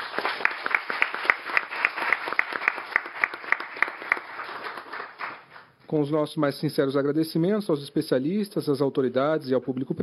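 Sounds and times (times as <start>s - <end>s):
audience applause: 0.0s - 5.4s
speech: 5.9s - 10.0s.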